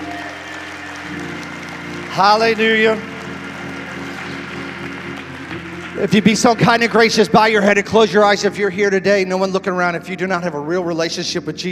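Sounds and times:
audience hand clapping applause: 0:00.0 - 0:08.7
sustained musical tones: 0:00.0 - 0:08.9
speech: 0:02.2 - 0:03.1, 0:06.0 - 0:11.6.

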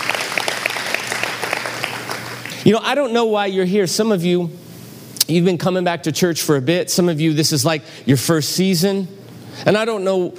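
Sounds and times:
audience applause: 0:00.0 - 0:02.6
speech: 0:02.6 - 0:04.6, 0:05.3 - 0:10.3.

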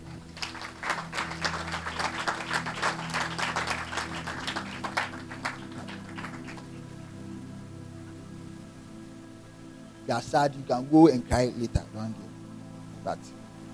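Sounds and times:
audience clapping: 0:00.0 - 0:06.9
speech: 0:10.1 - 0:12.2, 0:13.0 - 0:13.4.

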